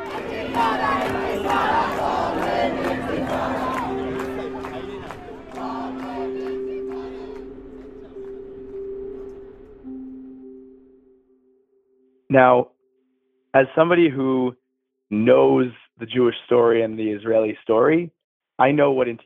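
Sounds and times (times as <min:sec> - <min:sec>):
campus crowd chanting slogans: 0:00.0 - 0:09.0
speech: 0:12.3 - 0:12.7, 0:13.5 - 0:19.2.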